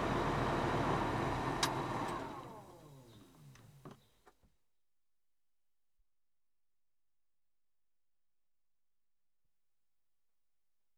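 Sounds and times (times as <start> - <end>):
Ford 7810 tractor: 0.0 - 3.7.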